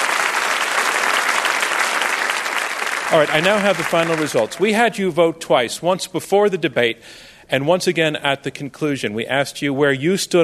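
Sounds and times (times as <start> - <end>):
audience applause after a debate: 0.0 - 4.8
speech: 3.1 - 10.4.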